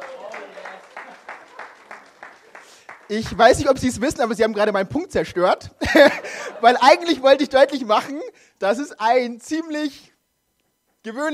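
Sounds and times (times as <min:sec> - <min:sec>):
laughter: 0:00.0 - 0:02.8, 0:05.8 - 0:07.2
audience applause: 0:00.0 - 0:03.7
speech: 0:03.1 - 0:10.1, 0:11.0 - 0:11.3.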